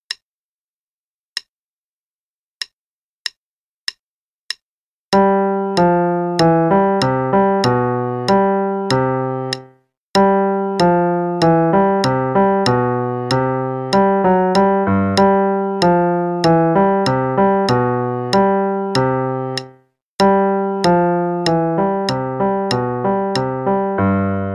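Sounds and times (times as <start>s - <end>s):
left-hand part of a sonatina in C major: 5.1s - 24.5s.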